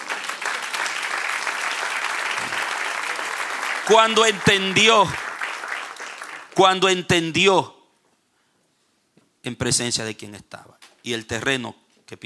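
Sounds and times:
audience applause: 0.0s - 6.6s
speech: 3.9s - 5.2s, 6.6s - 7.8s, 9.4s - 12.2s.

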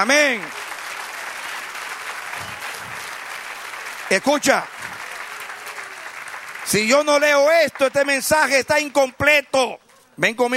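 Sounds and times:
speech: 0.0s - 0.6s, 4.1s - 4.8s, 6.7s - 10.5s
audience applause: 0.0s - 8.4s.

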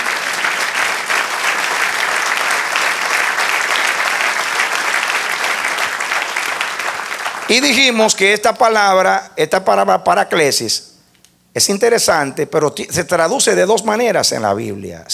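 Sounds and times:
audience applause: 0.0s - 8.0s
speech: 7.5s - 10.9s, 11.6s - 15.1s.

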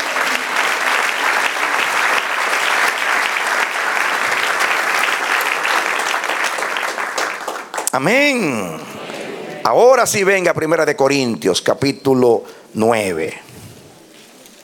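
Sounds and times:
audience applause: 0.0s - 10.2s
speech: 7.9s - 8.9s, 9.6s - 13.4s.

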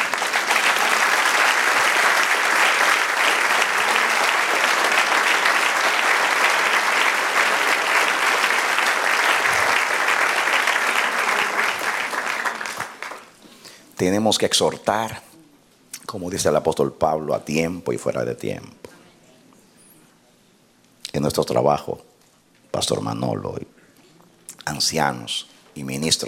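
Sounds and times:
audience applauding: 0.0s - 13.4s
speech: 14.1s - 15.3s, 16.1s - 18.9s, 21.2s - 22.1s, 22.8s - 23.8s, 24.7s - 26.2s.

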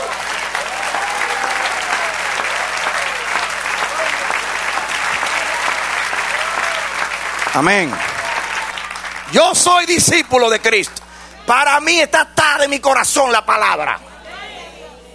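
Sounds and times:
audience applause: 0.0s - 11.1s
speech: 7.6s - 8.1s, 9.3s - 14.1s.

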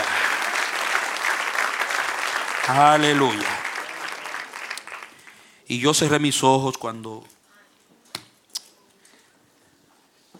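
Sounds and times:
church congregation applauding after the preacher calls for praise: 0.0s - 6.1s
speech: 2.7s - 3.5s, 5.7s - 7.4s.

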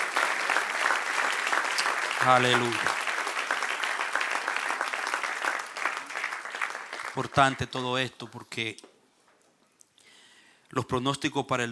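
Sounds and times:
audience applause: 0.0s - 7.8s
speech: 2.2s - 2.9s, 7.2s - 8.9s, 10.8s - 11.7s.

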